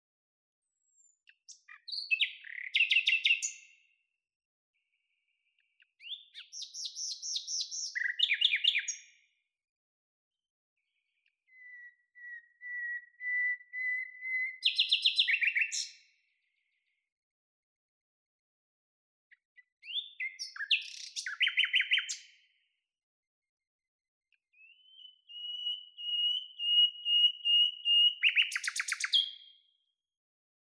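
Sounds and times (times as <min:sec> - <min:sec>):
common nightingale singing: 0:01.0 - 0:03.8, 0:05.8 - 0:09.1, 0:11.5 - 0:16.0, 0:19.6 - 0:22.3, 0:24.6 - 0:29.6.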